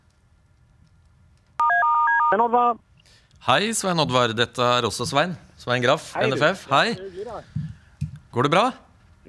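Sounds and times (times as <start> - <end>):
telephone line tones as a call is placed: 1.6 - 2.4
speech: 2.3 - 7.7, 8.3 - 9.2.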